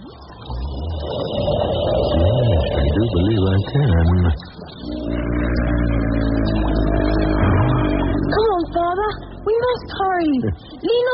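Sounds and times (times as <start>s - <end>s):
whale snoring: 0.5s - 3.3s, 4.8s - 10.4s
speech: 3.6s - 5.0s.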